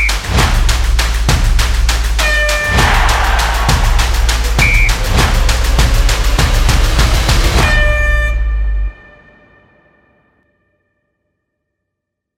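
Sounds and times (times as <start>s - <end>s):
energetic stomp percussion music: 0.0s - 8.3s.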